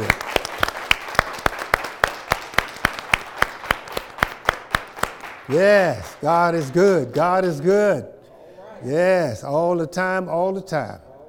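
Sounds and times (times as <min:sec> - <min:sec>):
audience clapping hands: 0:00.0 - 0:07.6
speech: 0:05.5 - 0:08.2, 0:08.8 - 0:11.1.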